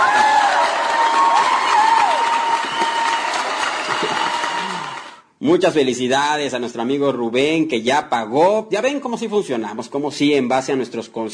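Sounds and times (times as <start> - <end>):
cheering and applause sound effect: 0.0 - 5.2
speech: 5.4 - 11.3.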